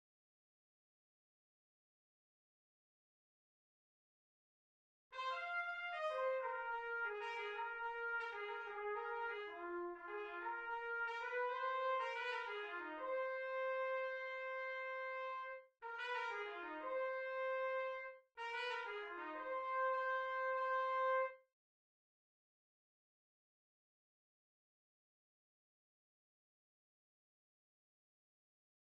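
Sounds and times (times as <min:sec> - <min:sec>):
Bb trumpet: 0:05.1 - 0:21.5.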